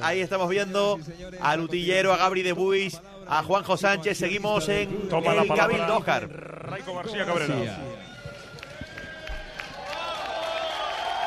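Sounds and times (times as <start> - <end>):
speech: 0.0 - 7.9
crowd ovation and applause in a plaza: 7.5 - 11.2.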